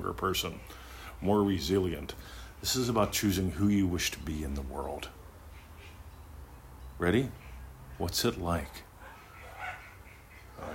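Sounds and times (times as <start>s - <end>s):
speech: 0.0s - 5.2s, 7.0s - 7.4s, 8.0s - 8.9s
puppies barking: 8.9s - 10.7s.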